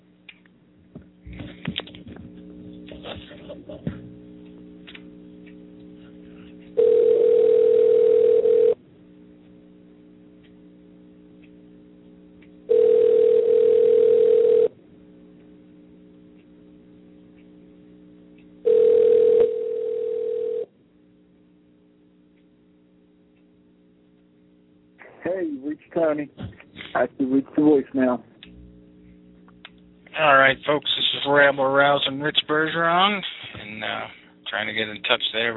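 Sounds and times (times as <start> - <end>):
speech: 3.1 - 4.1, 26.0 - 26.4, 27.1 - 28.3, 30.2 - 35.5
telephone ringback tone of an unanswered call: 6.8 - 8.8, 12.7 - 14.7, 18.6 - 20.7.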